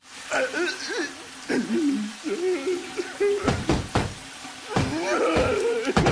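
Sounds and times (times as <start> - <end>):
muscle man crying: 0.3 - 3.7, 4.7 - 6.0.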